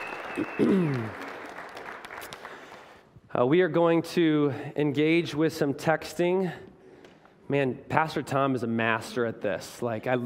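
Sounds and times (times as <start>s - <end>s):
audience applause welcoming a woman to the stage at a church service: 0.0s - 3.0s
speech: 0.4s - 1.2s, 3.3s - 6.7s, 7.5s - 10.2s.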